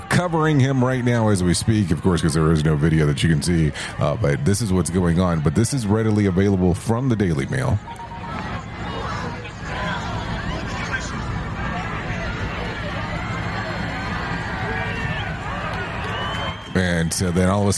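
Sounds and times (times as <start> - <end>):
crowd cheering and shouting: 0.0 - 17.7
speech: 0.2 - 7.9, 17.2 - 17.7.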